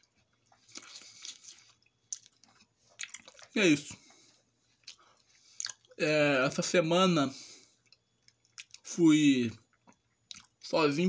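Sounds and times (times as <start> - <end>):
person chewing an apple: 0.0 - 6.6, 7.8 - 8.9, 9.7 - 10.6
speech: 3.6 - 4.0, 6.0 - 7.4, 9.0 - 9.6, 10.7 - 11.0.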